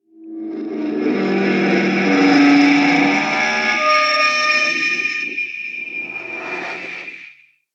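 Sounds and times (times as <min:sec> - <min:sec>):
resonating metal horror screech: 0:00.5 - 0:07.3.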